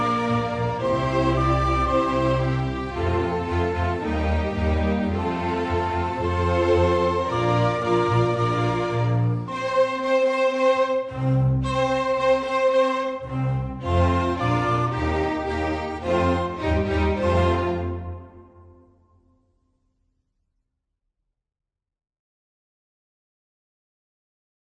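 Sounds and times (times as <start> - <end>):
rock orchestra music: 0.0 - 18.6.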